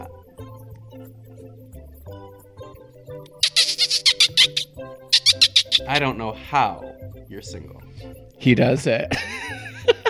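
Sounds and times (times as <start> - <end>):
person imitating dolphin chirps: 3.4 - 6.0
speech: 5.8 - 9.7.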